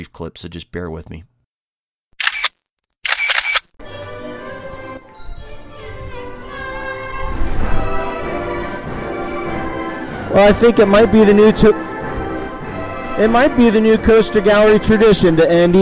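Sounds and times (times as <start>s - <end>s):
speech: 0.0s - 1.3s, 10.3s - 11.9s, 13.2s - 15.8s
carousel music at an amusement park: 3.8s - 15.8s.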